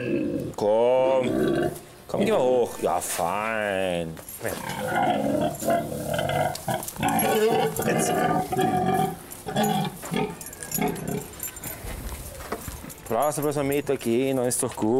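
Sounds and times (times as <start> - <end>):
pig grunting and squealing: 0.0 - 2.4, 4.5 - 11.4
speech: 2.3 - 10.3, 13.2 - 14.9.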